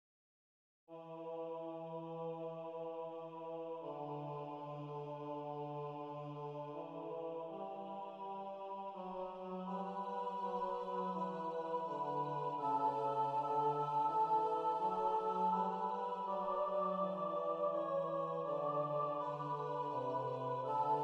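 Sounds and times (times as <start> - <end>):
SATB four-part choir singing: 0.9 - 21.0.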